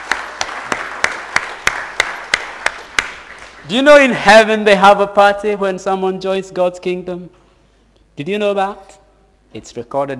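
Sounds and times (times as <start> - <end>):
audience applause: 0.0 - 3.7
speech: 3.7 - 7.4, 8.2 - 10.1.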